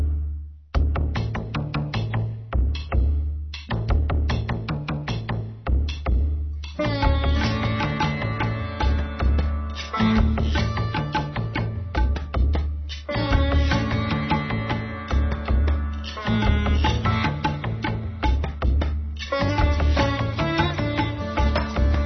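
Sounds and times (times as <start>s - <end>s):
fusion raga music: 0.1s - 22.0s.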